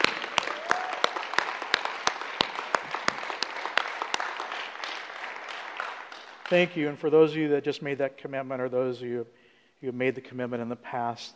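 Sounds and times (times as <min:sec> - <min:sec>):
audience applauding: 0:00.0 - 0:07.0
speech: 0:06.5 - 0:11.3.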